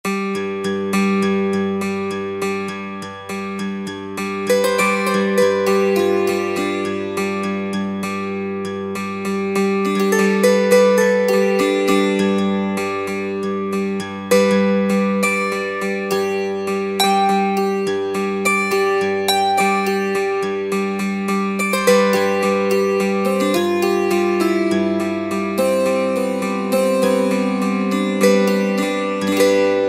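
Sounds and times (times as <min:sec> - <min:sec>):
dulcimer: 0:00.0 - 0:29.8.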